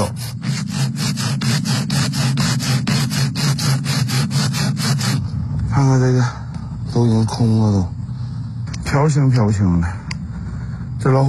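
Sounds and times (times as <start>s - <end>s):
sawing a dead tree into sections: 0.0s - 5.3s
speech: 5.8s - 6.4s, 7.0s - 8.0s, 8.9s - 10.0s, 11.0s - 11.2s.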